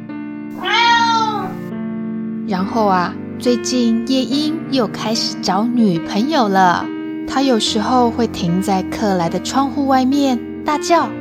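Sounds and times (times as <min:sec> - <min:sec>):
cat meowing: 0:00.6 - 0:01.7
speech: 0:02.5 - 0:11.2.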